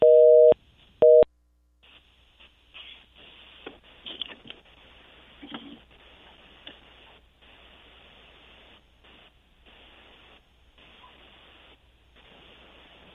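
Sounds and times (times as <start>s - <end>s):
telephone tone beeps after a dropped call: 0.0s - 1.3s
crackly telephone line noise with ticks: 1.8s - 13.1s.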